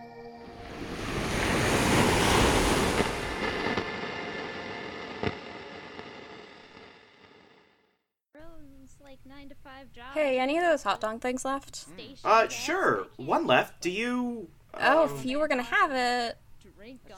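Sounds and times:
ocean surf washing in: 0:00.0 - 0:07.6
speech: 0:09.2 - 0:17.1.

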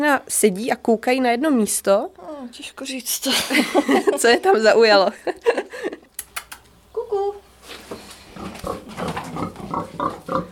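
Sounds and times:
speech: 0:00.1 - 0:05.9
laughter: 0:03.3 - 0:06.1
Přeštice pigs grunting and snorting: 0:08.3 - 0:10.4.

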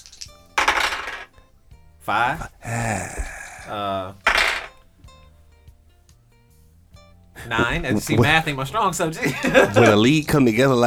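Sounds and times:
dice being rolled: 0:00.0 - 0:01.3, 0:04.3 - 0:04.7
speech: 0:02.1 - 0:04.2, 0:07.4 - 0:10.8
laughter: 0:07.4 - 0:10.2.

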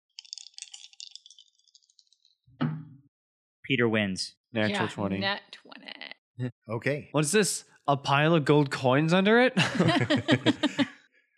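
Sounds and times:
dice rattling and rolling: 0:00.2 - 0:01.9
speech: 0:03.7 - 0:10.9
laughter: 0:03.8 - 0:05.2, 0:06.8 - 0:10.9.

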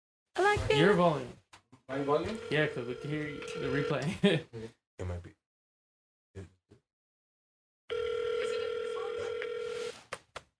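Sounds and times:
speech: 0:00.4 - 0:05.4
phone call dialing and ringing: 0:02.0 - 0:04.0, 0:07.9 - 0:10.0
laughter: 0:04.0 - 0:04.5.

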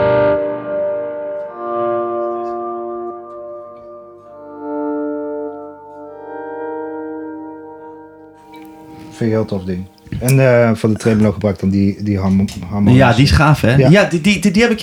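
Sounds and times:
sustained guitar chord washed in spacey reverb with slight distortion: 0:00.0 - 0:10.0
speech: 0:09.2 - 0:14.8.

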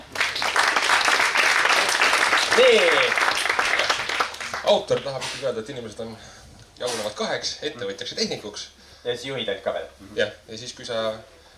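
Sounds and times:
audience clapping: 0:00.0 - 0:05.2
speech: 0:02.6 - 0:03.2, 0:04.7 - 0:11.4.

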